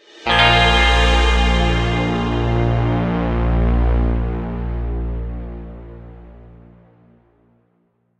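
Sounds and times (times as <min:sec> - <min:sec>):
mission success jingle: 0:00.3 - 0:04.4.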